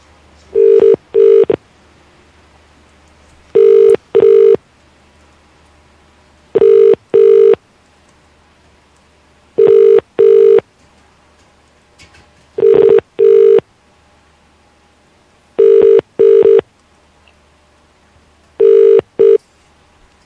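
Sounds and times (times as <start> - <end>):
telephone ringing on an outgoing call to a local number: 0.6 - 1.6, 3.6 - 4.6, 6.6 - 7.6, 9.6 - 10.6, 12.6 - 13.6, 15.6 - 16.6, 18.6 - 19.4.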